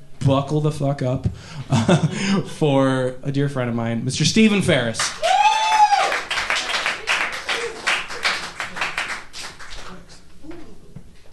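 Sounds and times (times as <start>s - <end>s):
speech: 0.2s - 5.3s
audience clapping: 4.8s - 10.2s.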